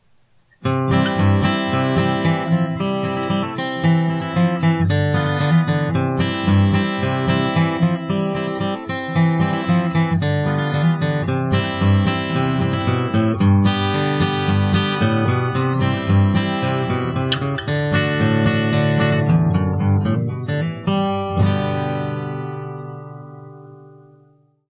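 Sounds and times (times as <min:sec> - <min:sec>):
used Epiphone guitar: 0:00.0 - 0:24.6.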